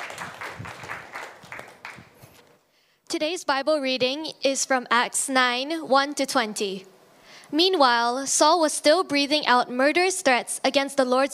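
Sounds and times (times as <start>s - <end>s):
audience applause: 0.0s - 2.4s
speech: 3.2s - 6.9s, 7.5s - 11.3s.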